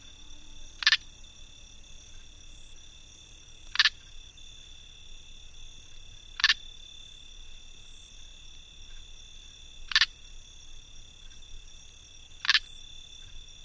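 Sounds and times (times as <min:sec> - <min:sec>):
cricket clicking close: 0:00.8 - 0:04.6, 0:05.8 - 0:07.3, 0:08.2 - 0:13.6.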